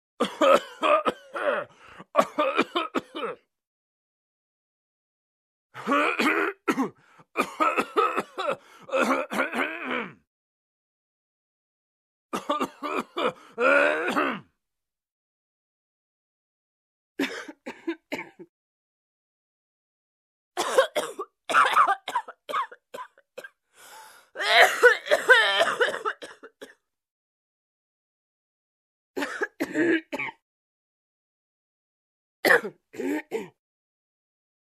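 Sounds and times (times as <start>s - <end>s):
men and women coughing: 0.2s - 3.4s, 5.8s - 9.6s, 12.4s - 14.4s, 17.2s - 18.5s, 20.6s - 23.6s, 24.4s - 26.8s, 29.2s - 30.4s, 32.4s - 33.6s.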